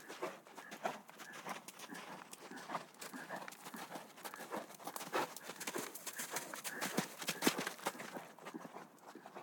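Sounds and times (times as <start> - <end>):
horses galloping outdoors on sand: 0.0 - 9.4.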